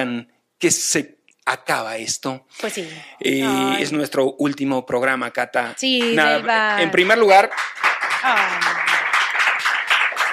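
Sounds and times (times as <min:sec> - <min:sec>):
speech: 0:00.0 - 0:08.9
applause: 0:06.0 - 0:10.3.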